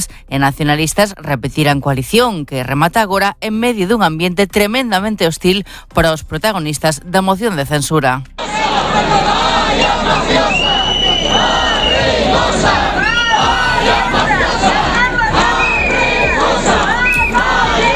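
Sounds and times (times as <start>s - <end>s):
speech: 0.0s - 10.6s
crowd shouting and insulting outside Lugo town hall: 8.4s - 17.9s.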